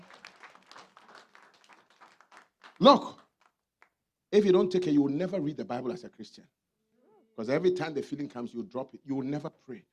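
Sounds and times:
audience clapping: 0.0s - 4.0s
speech: 2.8s - 3.2s, 4.3s - 6.6s, 7.4s - 9.9s.

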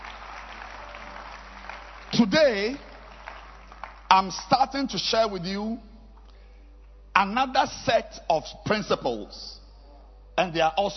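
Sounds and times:
audience clapping hands: 0.0s - 5.3s
speech: 2.2s - 2.9s, 4.1s - 5.9s, 7.2s - 9.6s, 10.4s - 10.9s.

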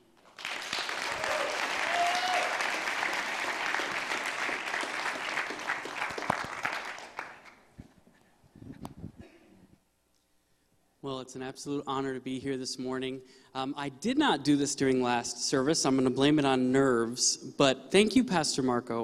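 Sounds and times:
large crowd applause and cheering: 0.0s - 7.7s
speech: 11.1s - 19.0s.

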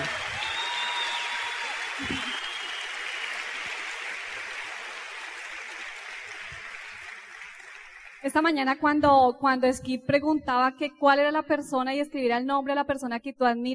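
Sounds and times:
audience applause: 0.0s - 8.4s
speech: 8.2s - 13.7s.

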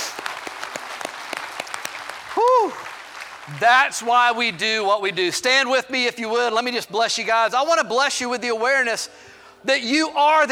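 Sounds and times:
audience applause: 0.0s - 4.6s
speech: 3.5s - 10.5s.

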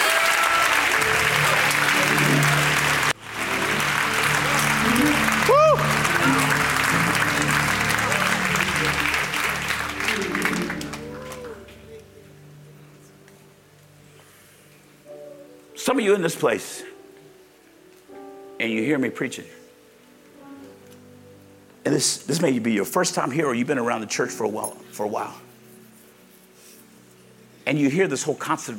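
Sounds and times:
crowd audience applauding and praising: 0.0s - 12.0s
speech: 16.0s - 16.9s, 18.6s - 19.6s, 21.9s - 25.4s, 27.7s - 28.7s.

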